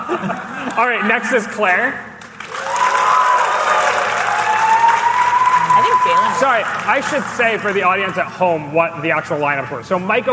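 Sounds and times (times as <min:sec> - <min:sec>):
speech: 0:00.2 - 0:02.1, 0:06.0 - 0:10.3
audience applause: 0:02.2 - 0:07.8.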